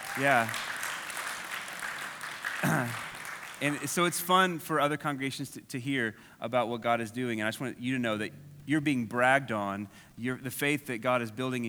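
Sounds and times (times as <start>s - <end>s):
audience clapping hands: 0.0s - 4.6s
speech: 0.2s - 0.6s, 2.6s - 11.6s.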